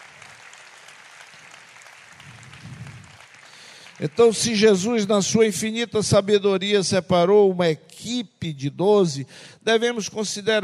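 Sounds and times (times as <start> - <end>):
audience applause: 0.0 - 4.9
speech: 4.0 - 10.6.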